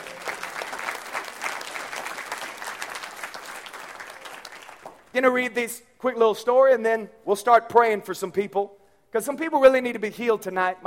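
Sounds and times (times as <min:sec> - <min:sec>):
audience hand clapping: 0:00.0 - 0:05.1
speech: 0:05.2 - 0:10.8.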